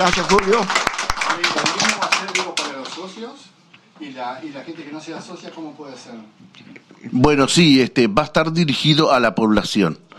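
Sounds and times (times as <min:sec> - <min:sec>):
speech: 0:00.0 - 0:00.8, 0:03.0 - 0:10.1
group clapping: 0:00.0 - 0:03.3.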